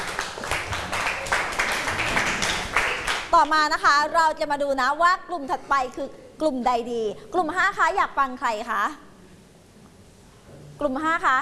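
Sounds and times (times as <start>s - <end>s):
classroom applause for presenting group: 0.0s - 3.4s
speech: 3.3s - 9.0s, 10.8s - 11.4s.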